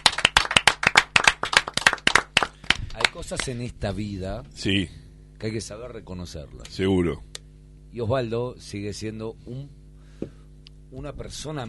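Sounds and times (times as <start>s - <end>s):
loud applause: 0.0s - 3.1s
speech: 3.2s - 7.3s, 7.9s - 11.6s.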